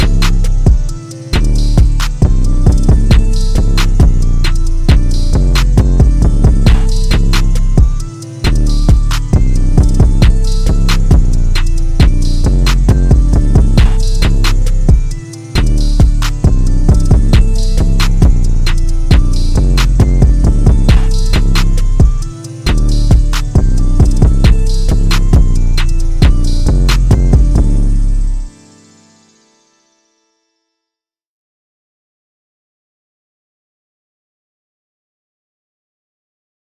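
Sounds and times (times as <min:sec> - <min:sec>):
hard ambience: 0:00.0 - 0:28.6.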